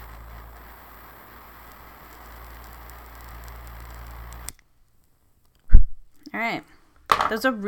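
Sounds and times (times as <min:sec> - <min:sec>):
steady rushing hiss: 0:00.0 - 0:04.6
something lit by a torch crackling: 0:00.0 - 0:06.4
speech: 0:06.4 - 0:07.6.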